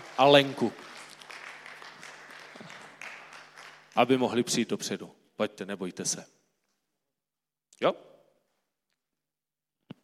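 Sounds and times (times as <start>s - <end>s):
audience applause at a gathering: 0.0s - 4.4s
speech: 0.2s - 0.9s, 4.0s - 6.4s, 7.8s - 8.1s.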